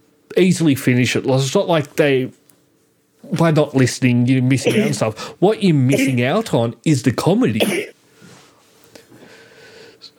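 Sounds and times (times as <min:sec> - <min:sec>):
speech: 0:00.4 - 0:02.4, 0:03.3 - 0:08.0
sneeze: 0:04.6 - 0:05.1, 0:05.9 - 0:06.3, 0:07.6 - 0:07.9.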